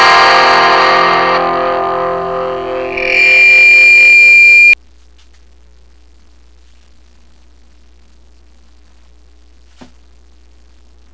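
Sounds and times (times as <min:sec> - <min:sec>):
turntable scratch: 0:00.0 - 0:04.8.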